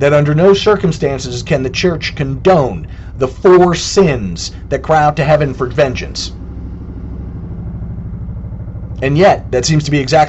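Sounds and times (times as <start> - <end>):
speech: 0.0 - 6.4, 9.0 - 10.2
helicopter passing overhead: 0.0 - 10.2.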